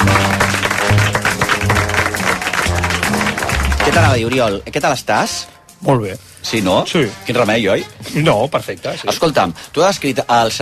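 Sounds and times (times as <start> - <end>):
audience applause: 0.0 - 4.8
speech: 3.9 - 10.6.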